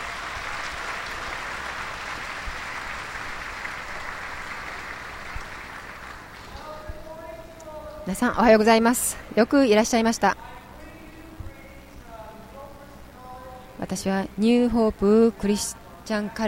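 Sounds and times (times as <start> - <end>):
audience applause welcoming speaker: 0.0 - 6.8
speech: 8.1 - 10.6, 13.9 - 16.4.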